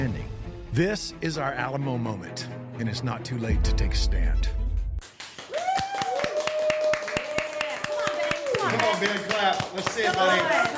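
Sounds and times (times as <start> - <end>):
speech: 0.8 - 4.6, 8.7 - 10.7
clapping: 5.0 - 10.7.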